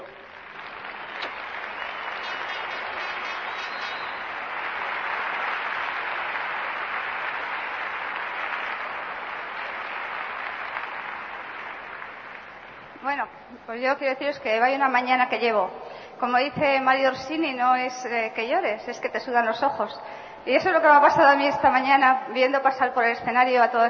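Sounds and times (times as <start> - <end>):
audience clapping: 0.0 - 13.7
speech: 13.1 - 23.8.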